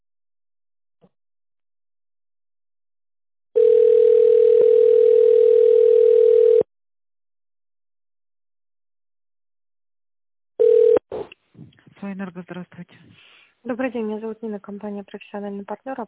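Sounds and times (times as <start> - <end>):
telephone ringback tone: 3.6 - 6.7, 10.6 - 11.0
speech: 13.8 - 16.0.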